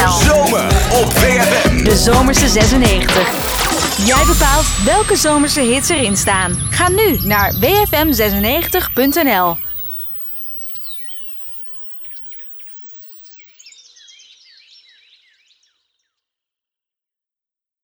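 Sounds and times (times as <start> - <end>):
125 bpm branded music intro: 0.0 - 10.9.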